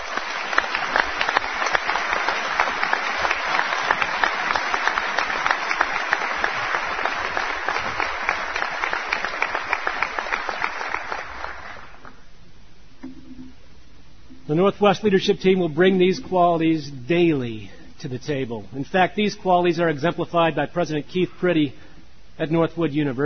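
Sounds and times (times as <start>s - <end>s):
audience applause: 0.0s - 12.2s
speech: 14.6s - 21.8s, 22.4s - 23.2s.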